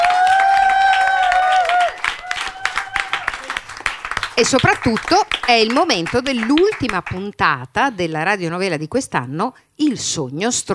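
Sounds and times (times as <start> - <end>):
high sustained whoop or whistle: 0.0 - 3.4
audience applause: 0.0 - 7.2
speech: 4.4 - 10.7.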